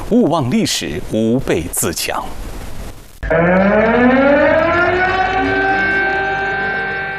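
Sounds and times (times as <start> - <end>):
speech: 0.1 - 2.5, 3.3 - 5.0
air raid siren: 3.2 - 7.1.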